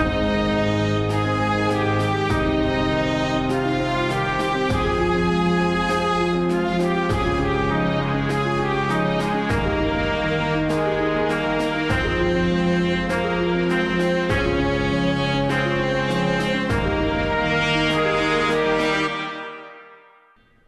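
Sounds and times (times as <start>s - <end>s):
tuba: 0.0s - 20.0s
strings doubling the melody: 0.0s - 20.2s
flute: 0.0s - 20.4s
horn: 0.0s - 20.5s
trumpet: 0.0s - 20.5s
bass drum: 1.2s - 15.1s.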